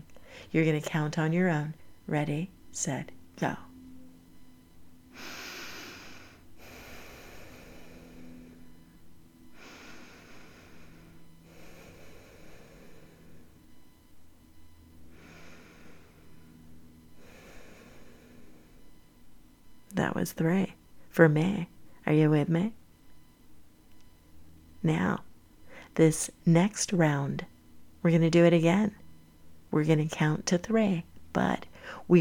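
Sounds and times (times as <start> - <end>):
speech: 0.4 - 3.6, 20.2 - 22.8, 24.8 - 25.3, 26.0 - 29.0, 29.7 - 32.2
calm natural breathing in and out: 5.1 - 13.9, 15.0 - 19.0.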